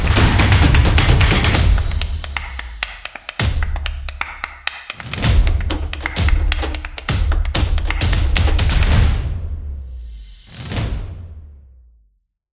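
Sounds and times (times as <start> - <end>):
claps: 0.0 - 9.0.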